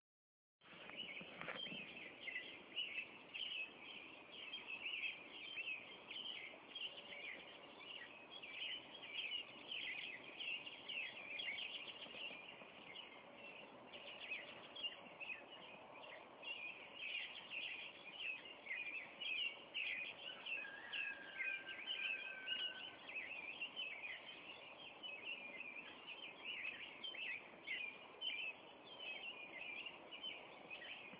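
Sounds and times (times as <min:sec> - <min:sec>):
spring morning ambience: 0:00.6 - 0:31.1.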